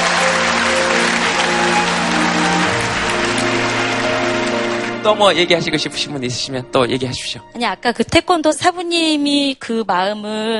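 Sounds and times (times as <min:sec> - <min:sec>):
audience applause: 0:00.0 - 0:06.6
speech: 0:05.0 - 0:10.5.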